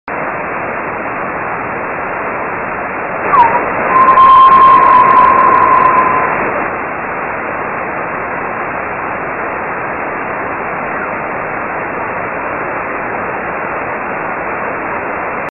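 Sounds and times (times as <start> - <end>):
strong Geminid meteor radio ping: 3.2 - 6.8.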